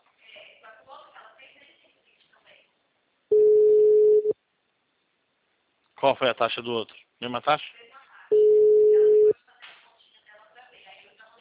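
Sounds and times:
telephone busy signal: 0:03.3 - 0:04.4, 0:08.3 - 0:09.3
speech: 0:06.0 - 0:07.8.

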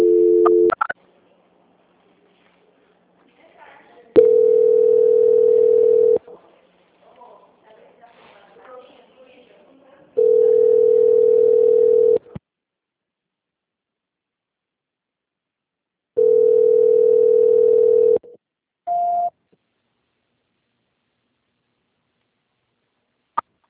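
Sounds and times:
telephone line tones during a call transfer: 0:00.0 - 0:00.9, 0:04.2 - 0:06.2, 0:10.2 - 0:12.2, 0:16.2 - 0:18.2.

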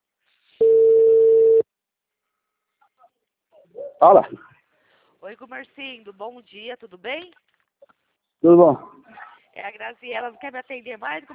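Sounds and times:
mobile phone call tone on a borrowed cellphone: 0:00.6 - 0:01.6
speech: 0:03.6 - 0:04.5, 0:05.2 - 0:07.6, 0:08.4 - 0:11.3.

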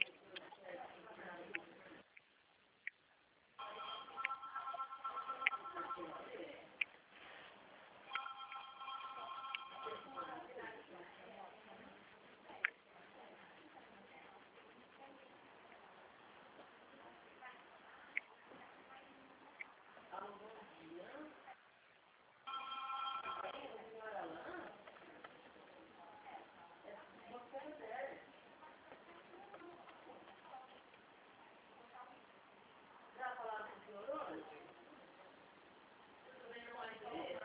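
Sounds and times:
people talking: 0:00.0 - 0:02.1, 0:03.6 - 0:06.9, 0:08.1 - 0:15.9, 0:16.6 - 0:21.6, 0:22.5 - 0:31.0, 0:33.1 - 0:35.4, 0:36.3 - 0:37.4
faint telephone ringing with an incoming call: 0:03.6 - 0:06.3, 0:08.1 - 0:10.4, 0:22.5 - 0:23.7.

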